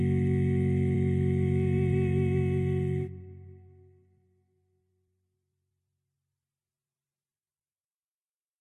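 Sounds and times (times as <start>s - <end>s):
barbershop tags sung by all parts: 0.0s - 3.5s.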